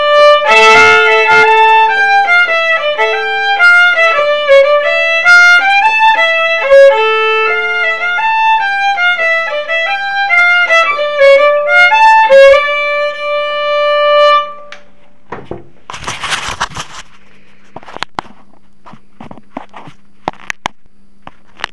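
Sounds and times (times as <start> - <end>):
polska folk dance tune in major and minor: 0.0 - 14.8.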